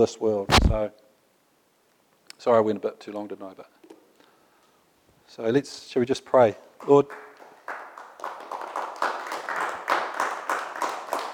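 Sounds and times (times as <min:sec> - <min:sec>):
speech: 0:00.0 - 0:01.0, 0:02.4 - 0:03.8, 0:05.3 - 0:07.2
audience courtesy clapping at a church gathering: 0:06.8 - 0:11.3.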